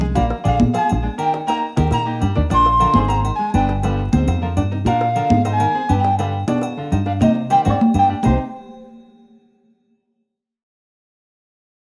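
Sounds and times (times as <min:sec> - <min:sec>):
alto salsa music: 0:00.0 - 0:09.2.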